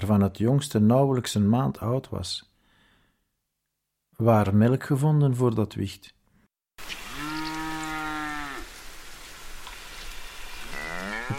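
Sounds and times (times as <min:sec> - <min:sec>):
speech: 0:00.0 - 0:02.5, 0:04.2 - 0:06.2
steady hiss of rain or wind: 0:06.8 - 0:11.3
cow mooing: 0:07.1 - 0:08.7, 0:10.7 - 0:11.3.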